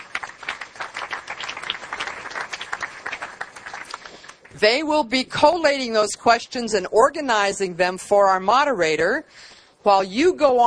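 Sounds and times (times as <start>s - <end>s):
crowd applause: 0.0s - 4.5s
speech: 4.6s - 10.6s.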